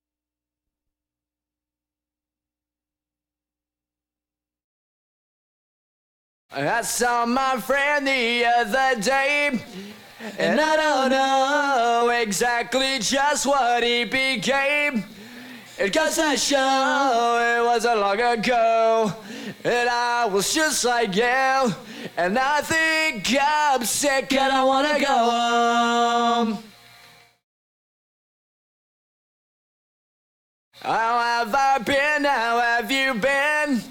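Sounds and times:
person singing: 0:06.5 - 0:26.8, 0:30.8 - 0:33.8.

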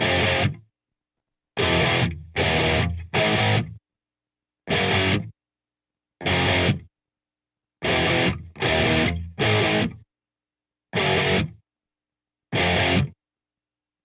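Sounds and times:
guitar: 0:00.0 - 0:00.7, 0:01.6 - 0:03.8, 0:04.7 - 0:05.4, 0:06.2 - 0:06.9, 0:07.8 - 0:10.1, 0:10.9 - 0:11.6, 0:12.5 - 0:13.2.

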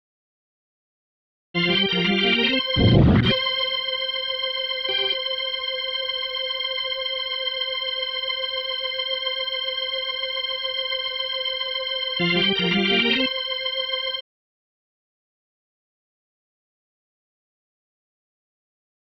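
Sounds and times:
organ: 0:01.6 - 0:14.2.

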